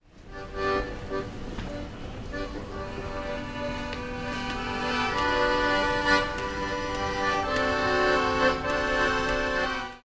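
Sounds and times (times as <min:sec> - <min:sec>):
accordion: 0:00.1 - 0:10.0.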